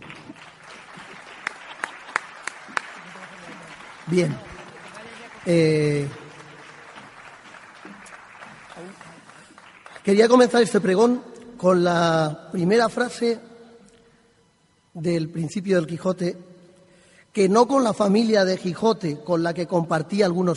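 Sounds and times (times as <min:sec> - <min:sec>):
audience applause: 0:00.0 - 0:10.5
speech: 0:04.1 - 0:04.5, 0:05.4 - 0:06.2, 0:10.1 - 0:13.5, 0:15.0 - 0:16.5, 0:17.3 - 0:20.5.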